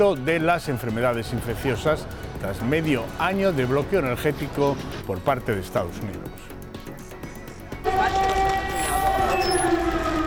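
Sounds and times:
speech: 0.0 - 6.5
air raid siren: 7.8 - 10.2.

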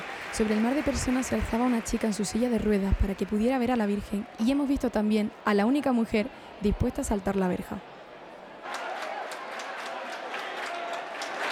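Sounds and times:
crowd clapping rhythmically inside a hermitage: 0.0 - 3.6, 8.6 - 11.5
murmur of voices: 0.0 - 8.7
speech: 0.4 - 7.9.

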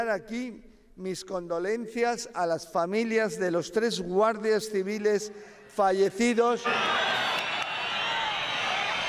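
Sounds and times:
speech: 0.0 - 7.2
audience booing at a minister: 6.6 - 9.0.

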